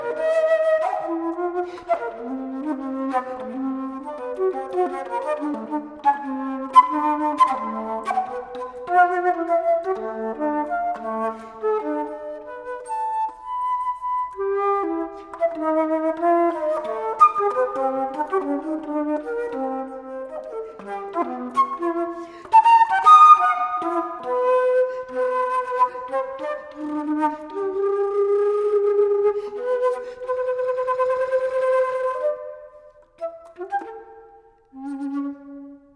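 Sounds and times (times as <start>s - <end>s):
solo alto flute: 0.0s - 35.9s.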